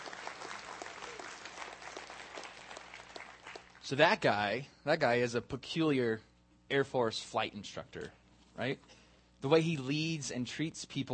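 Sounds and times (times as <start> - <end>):
audience applause: 0.0 - 3.9
speech: 3.9 - 11.1.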